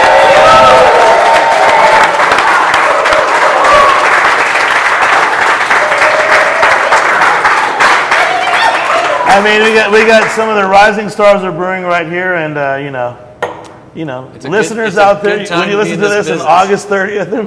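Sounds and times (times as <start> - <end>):
audience applause at a live show: 0.0 - 10.4
speech: 9.4 - 13.2, 14.0 - 17.4.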